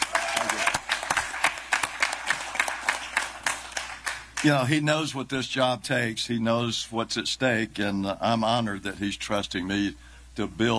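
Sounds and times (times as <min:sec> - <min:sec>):
audience applause at a political rally: 0:00.0 - 0:04.5
speech: 0:04.4 - 0:10.7.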